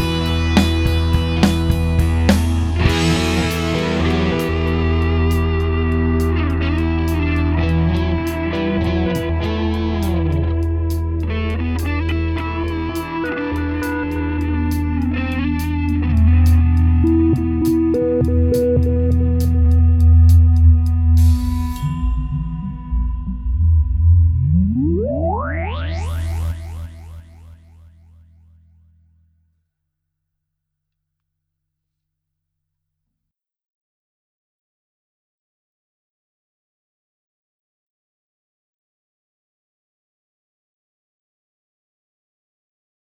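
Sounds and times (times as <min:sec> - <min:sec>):
unmixed rock music: 0:00.0 - 0:26.9.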